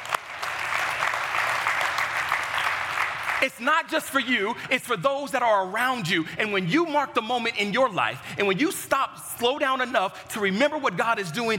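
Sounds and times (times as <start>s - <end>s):
audience clapping: 0.0s - 4.0s
speech: 3.4s - 11.5s.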